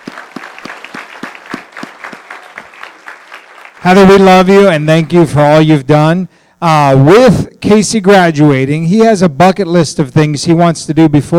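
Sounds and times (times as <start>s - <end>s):
audience applause: 0.0s - 4.3s
speech: 3.8s - 11.3s.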